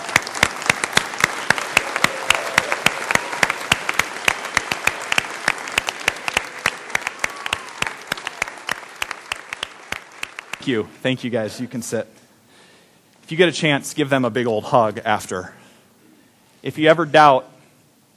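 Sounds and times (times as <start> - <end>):
loud standing ovation applause: 0.0 - 10.8
speech: 10.6 - 12.2, 13.3 - 15.6, 16.6 - 17.5.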